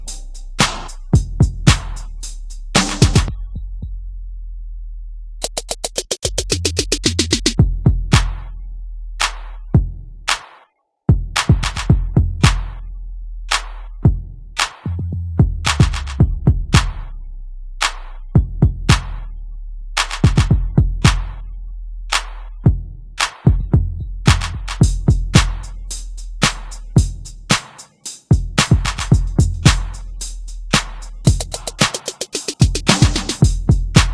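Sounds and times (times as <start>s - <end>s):
drums: 0.0s - 3.3s, 5.4s - 8.5s, 11.1s - 12.7s, 13.5s - 17.0s, 17.8s - 19.2s, 20.0s - 21.3s, 22.1s - 34.1s.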